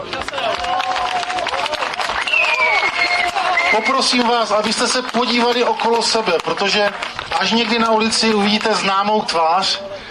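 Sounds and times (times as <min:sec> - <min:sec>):
crowd applause: 0:00.0 - 0:09.1
whistles: 0:02.2 - 0:04.0
speech: 0:03.8 - 0:10.1.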